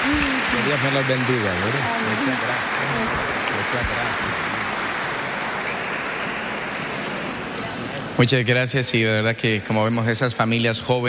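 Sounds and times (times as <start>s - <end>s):
audience applause: 0.0s - 8.6s
speech: 0.6s - 4.7s, 8.2s - 11.0s.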